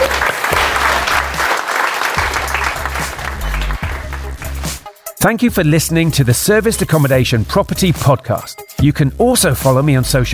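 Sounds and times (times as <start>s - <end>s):
audience applause: 0.0s - 4.8s
speech: 5.2s - 10.3s.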